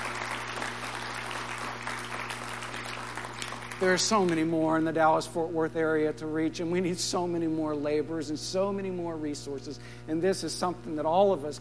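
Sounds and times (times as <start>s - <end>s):
audience applause: 0.0s - 4.1s
speech: 3.8s - 11.5s.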